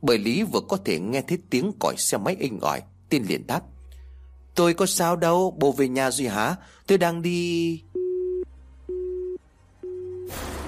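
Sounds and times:
speech: 0:00.0 - 0:03.8, 0:04.6 - 0:08.0
phone busy tone after a call cuts off: 0:08.0 - 0:10.3.

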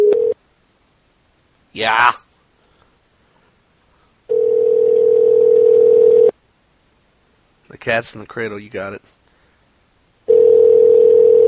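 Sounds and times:
telephone dial tone: 0:00.0 - 0:00.4, 0:04.3 - 0:06.3, 0:10.3 - 0:11.4
speech: 0:01.8 - 0:02.2, 0:07.8 - 0:09.2.

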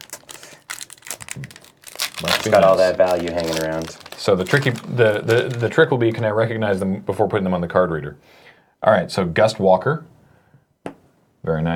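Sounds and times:
shiny foil card pack crinkling: 0:00.0 - 0:06.1
speech: 0:01.4 - 0:01.6, 0:02.2 - 0:10.1, 0:11.4 - 0:11.7.

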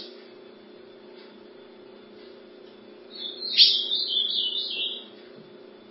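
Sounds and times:
ultramarine grosbeak call note: 0:03.1 - 0:05.1.

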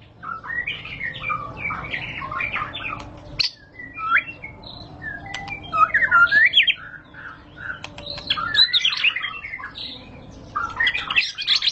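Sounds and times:
white-rumped shama singing: 0:00.1 - 0:11.7
sharp click: 0:05.3 - 0:05.6, 0:07.8 - 0:08.3.

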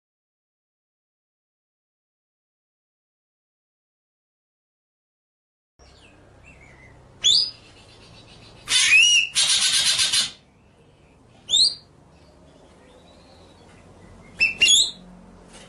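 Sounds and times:
low background hum: 0:05.8 - 0:15.6
White-rumped shama song: 0:07.2 - 0:07.6, 0:08.6 - 0:10.4, 0:14.2 - 0:15.0.

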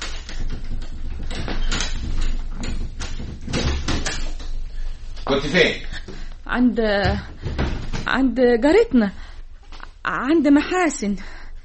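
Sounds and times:
door locked from the inside being handled, thumping and rattling: 0:00.0 - 0:04.8, 0:07.0 - 0:08.2
steady hiss: 0:03.6 - 0:11.6
speech: 0:05.3 - 0:07.3, 0:08.1 - 0:09.2, 0:10.1 - 0:11.4.

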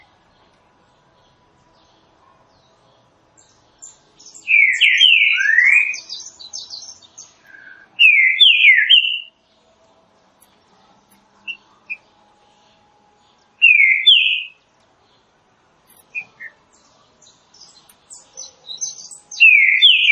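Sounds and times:
faint background chirps: 0:00.0 - 0:20.1
green-winged saltator song: 0:03.4 - 0:09.4, 0:13.6 - 0:14.6, 0:16.0 - 0:20.1.

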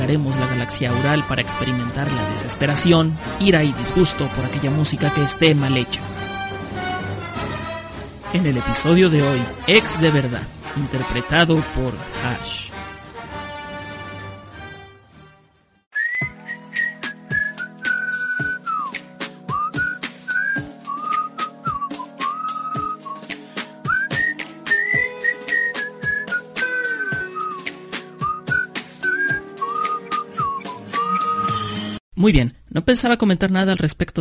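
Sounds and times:
speech: 0:00.1 - 0:06.3, 0:08.3 - 0:12.7, 0:32.3 - 0:34.1
whistled tune at start of song: 0:15.9 - 0:32.0.

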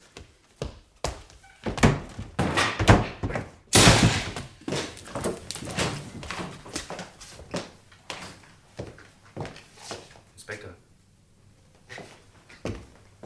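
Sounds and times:
door crashing open: 0:01.8 - 0:06.2.

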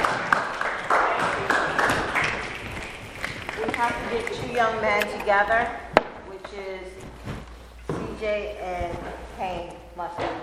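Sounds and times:
audience clapping: 0:00.0 - 0:04.8
speech: 0:03.8 - 0:05.8, 0:08.2 - 0:10.4.

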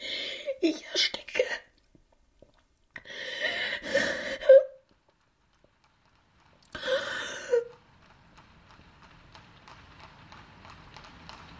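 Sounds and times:
speech: 0:00.6 - 0:01.4
horse trotting briskly pulling a light tilbury carriage across a town square: 0:03.8 - 0:11.5.

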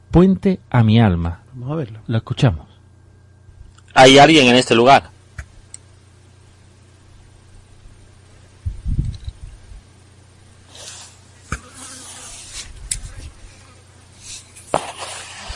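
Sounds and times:
speech: 0:00.2 - 0:02.7, 0:04.0 - 0:05.1
fly buzzing: 0:10.6 - 0:15.5.

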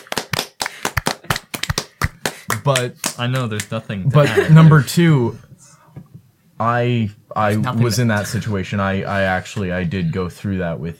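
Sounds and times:
clapping: 0:00.0 - 0:03.7
speech: 0:02.6 - 0:05.5, 0:06.6 - 0:10.9.

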